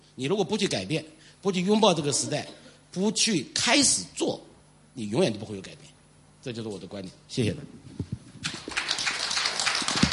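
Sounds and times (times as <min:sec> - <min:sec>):
speech: 0:00.2 - 0:08.1
audience applause: 0:08.5 - 0:10.1.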